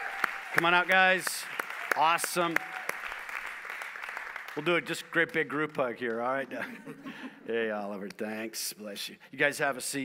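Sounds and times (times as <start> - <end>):
audience applause: 0.0 - 6.4
speech: 0.5 - 2.7, 4.6 - 10.0.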